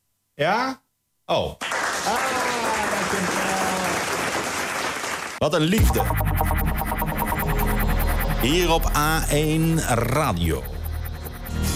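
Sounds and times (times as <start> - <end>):
speech: 0.4 - 2.6, 5.4 - 6.5, 8.4 - 10.7
canned applause on a Dutch radio morning show: 1.6 - 5.4
faint tonal lines: 5.8 - 11.7.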